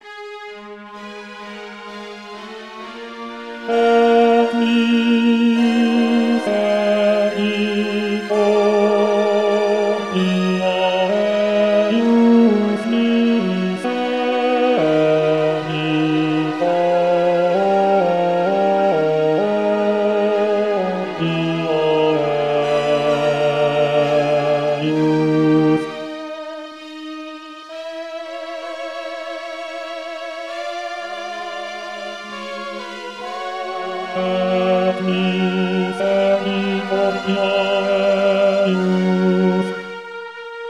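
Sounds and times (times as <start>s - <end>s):
bass voice singing: 3.7s - 25.9s, 34.1s - 39.7s.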